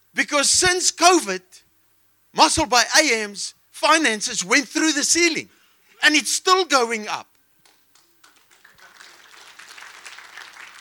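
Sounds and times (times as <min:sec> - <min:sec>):
speech: 0:00.3 - 0:01.6, 0:02.3 - 0:07.3
crowd clapping: 0:07.6 - 0:10.7.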